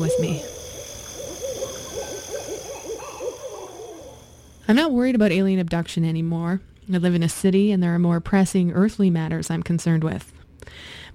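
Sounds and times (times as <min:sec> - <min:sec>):
speech: 0:00.0 - 0:00.6, 0:04.7 - 0:11.1
owl hooting: 0:00.0 - 0:04.6.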